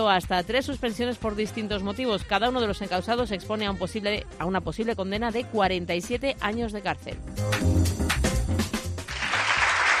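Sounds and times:
speech: 0.0s - 8.0s
crowd applause: 9.1s - 9.9s.

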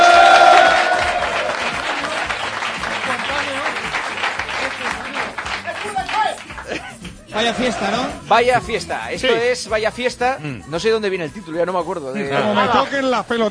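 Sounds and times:
audience applause on cue: 0.0s - 6.8s
speech: 7.4s - 13.4s.

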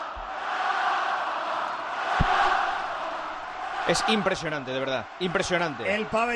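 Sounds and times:
arena crowd giving a standing ovation: 0.0s - 6.3s
low thump: 2.1s - 3.6s
speech: 3.9s - 6.3s.

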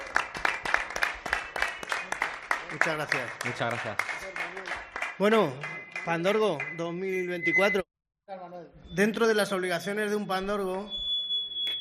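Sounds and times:
rhythmic handclaps for a bullfighter at a bullring: 0.0s - 7.8s
speech: 2.7s - 7.8s, 9.0s - 11.0s.

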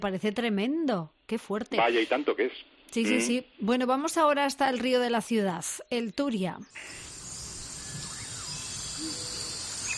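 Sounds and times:
speech: 0.0s - 7.1s
jungle bird calls and chirps: 5.8s - 9.9s
insects and cicadas hissing in jungle: 6.7s - 9.9s.

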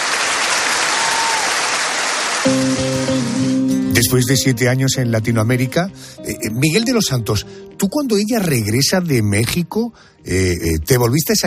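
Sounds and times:
audience applause: 0.0s - 3.5s
speech: 2.4s - 2.9s, 4.0s - 11.4s
sustained musical chord: 2.5s - 8.8s.

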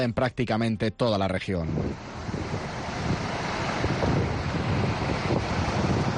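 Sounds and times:
speech: 0.0s - 2.1s
wind roaring during a storm: 1.5s - 6.1s.

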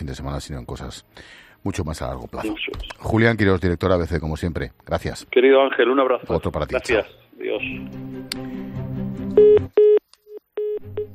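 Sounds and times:
speech: 0.1s - 8.8s
telephone line tone beeps: 9.4s - 11.1s.

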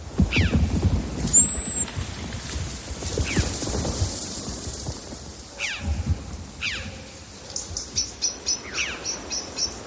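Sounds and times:
falling snow in beech forest: 0.0s - 7.4s
birds in beech forest: 0.2s - 1.9s, 5.5s - 9.8s.

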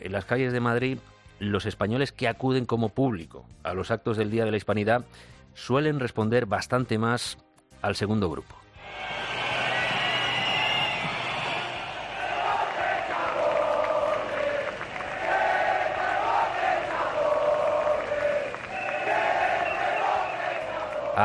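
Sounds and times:
speech: 0.0s - 9.2s
crowd booing: 8.8s - 21.2s.

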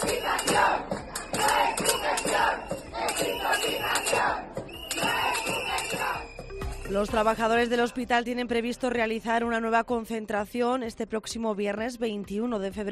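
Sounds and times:
protesters shouting: 0.0s - 6.3s
protesters' whistles: 0.0s - 7.0s
speech: 6.9s - 12.9s.

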